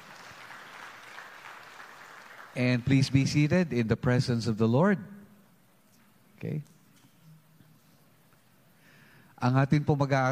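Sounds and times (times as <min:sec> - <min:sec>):
church congregation applauding: 0:00.0 - 0:03.2
speech: 0:02.6 - 0:05.2, 0:06.4 - 0:06.7, 0:09.4 - 0:10.3.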